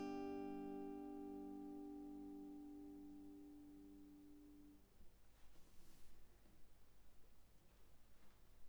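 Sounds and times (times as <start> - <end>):
acoustic guitar arpeggio: 0.0 - 4.8.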